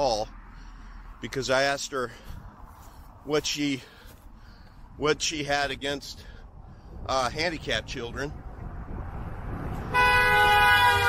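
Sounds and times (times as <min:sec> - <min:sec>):
speech: 0:00.0 - 0:00.4, 0:01.2 - 0:02.4, 0:03.2 - 0:04.0, 0:05.0 - 0:06.3, 0:07.0 - 0:08.4
low road rumble: 0:00.0 - 0:11.0
car horn honking: 0:09.9 - 0:11.0.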